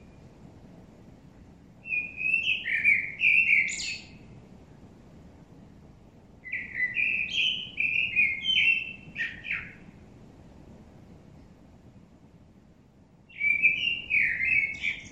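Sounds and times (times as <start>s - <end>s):
common blackbird Turdus merula song: 1.8s - 4.3s, 6.4s - 10.0s, 13.3s - 15.1s.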